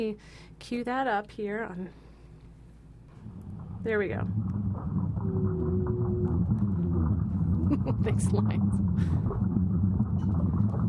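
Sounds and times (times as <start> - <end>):
speech: 0.0 - 2.1, 3.8 - 5.0, 7.8 - 9.6
blue whale call: 3.1 - 7.7, 8.3 - 10.8
dense pulsing rumble of deep underwater noise: 3.1 - 10.8.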